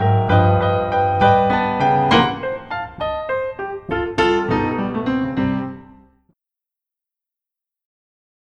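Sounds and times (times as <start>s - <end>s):
blues improvisation: 0.0s - 6.2s.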